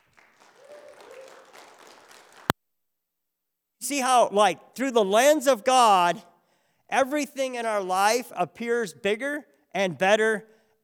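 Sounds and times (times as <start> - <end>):
audience applause: 0.0 - 2.5
speech: 3.8 - 6.3, 6.9 - 10.8.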